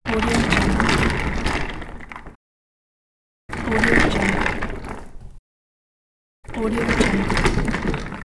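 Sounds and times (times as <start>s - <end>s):
rolling: 0.1s - 2.4s, 3.5s - 5.4s, 6.5s - 8.2s.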